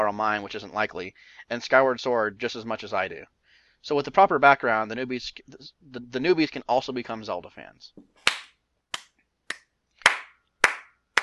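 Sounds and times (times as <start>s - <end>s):
speech: 0.0s - 8.3s
slow clap: 8.2s - 11.2s.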